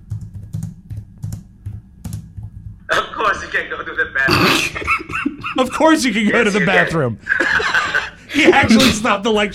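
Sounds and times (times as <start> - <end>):
typing on a computer keyboard: 0.0 - 2.8
speech: 3.2 - 9.5
laughter: 4.6 - 9.1.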